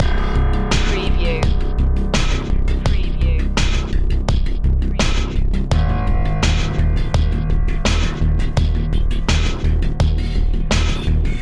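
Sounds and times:
music loop: 0.0 - 11.4.

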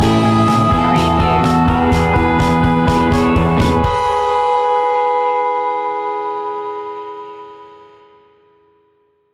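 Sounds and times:
rock music stinger: 0.0 - 6.8.

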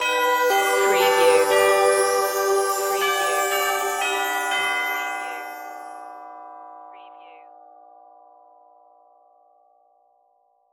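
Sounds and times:
synthesized outro melody without drums: 0.0 - 6.0.

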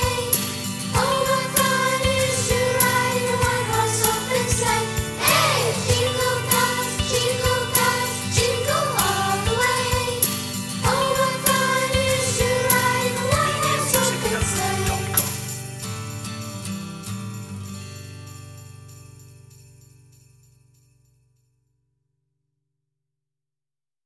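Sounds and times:
group of children singing: 0.0 - 15.4.

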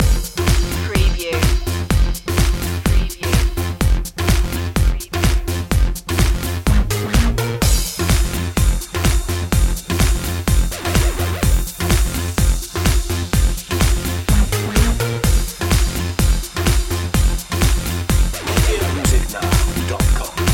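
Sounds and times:
sexy step music loop: 0.0 - 20.5.

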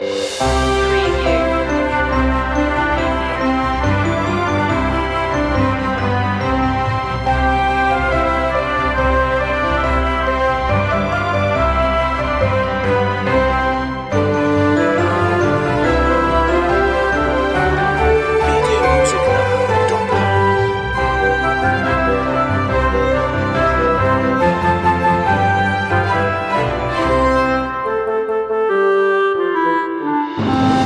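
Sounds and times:
orchestral music loop: 0.0 - 30.8.

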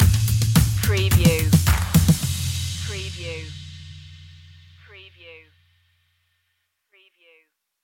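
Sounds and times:
taking flight music stinger: 0.0 - 5.0.

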